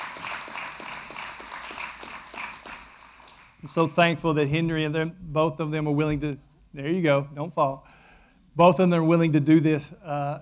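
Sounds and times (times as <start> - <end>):
audience hand clapping: 0.0 - 3.7
speech: 3.6 - 7.9, 8.6 - 10.4.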